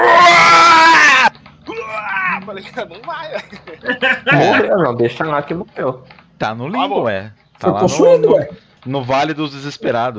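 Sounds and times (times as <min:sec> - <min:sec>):
person screaming in agony: 0:00.0 - 0:02.4, 0:07.8 - 0:08.6
strained wavering cries and groans: 0:00.0 - 0:02.5, 0:07.7 - 0:08.6
laughter: 0:01.7 - 0:04.8, 0:07.6 - 0:08.6
speech: 0:02.6 - 0:10.1.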